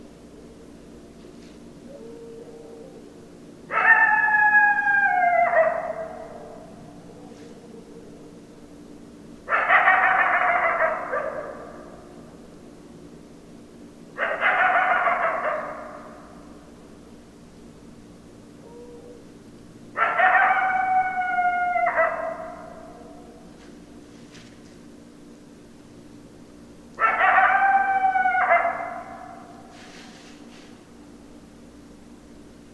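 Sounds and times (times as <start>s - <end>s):
low hum: 0.0s - 32.7s
coyote howling: 1.8s - 8.4s, 9.5s - 12.2s, 14.2s - 16.4s, 18.6s - 19.3s, 20.0s - 23.5s, 27.0s - 29.7s.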